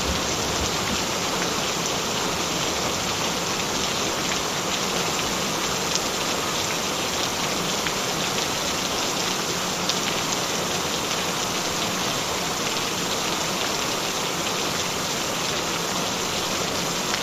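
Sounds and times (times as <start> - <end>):
gentle rain: 0.0 - 17.2.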